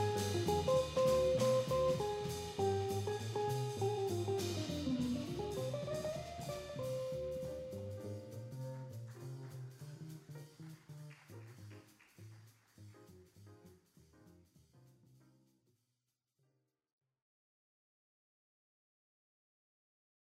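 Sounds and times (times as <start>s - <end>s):
jazz music: 0.0s - 15.4s.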